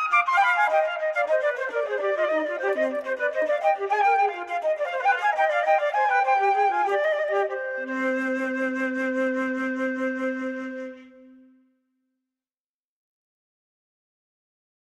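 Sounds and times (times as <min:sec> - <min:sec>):
two-part invention on two flutes: 0:00.0 - 0:11.7.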